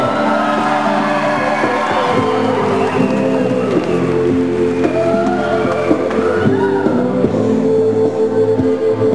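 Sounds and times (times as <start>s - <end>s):
audience applause: 0.0s - 9.0s.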